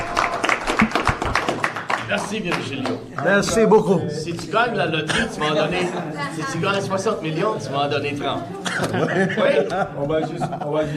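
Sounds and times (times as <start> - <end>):
audience applause: 0.0 - 3.0
speech: 2.1 - 10.9
laughter: 8.5 - 10.9.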